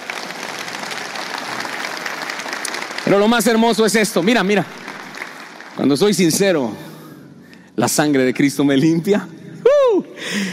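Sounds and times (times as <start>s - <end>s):
audience applause at a church worship service: 0.0s - 6.6s
speech: 3.0s - 4.8s, 5.8s - 6.9s, 7.8s - 9.4s.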